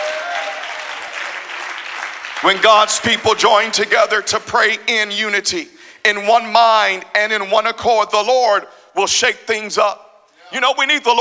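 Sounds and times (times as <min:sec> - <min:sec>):
audience clapping hands: 0:00.0 - 0:03.9
speech: 0:02.4 - 0:11.2.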